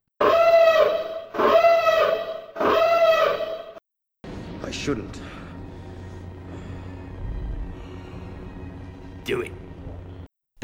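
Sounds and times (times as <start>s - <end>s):
spoiler siren sound effect: 0.2s - 3.8s
speech: 4.8s - 5.4s, 9.3s - 9.6s.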